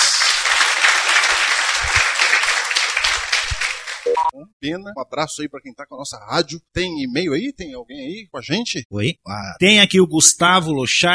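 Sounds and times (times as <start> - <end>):
round of applause: 0.0 - 4.3
speech: 4.6 - 11.1.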